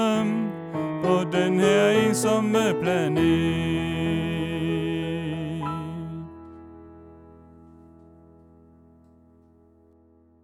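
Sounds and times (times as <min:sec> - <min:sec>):
soprano voice: 0:00.0 - 0:06.5.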